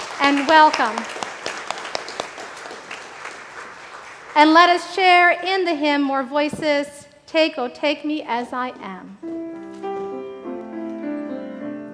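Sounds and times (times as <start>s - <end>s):
church congregation applauding to welcome new members: 0.0s - 5.1s
speech: 0.2s - 1.2s, 4.4s - 9.3s.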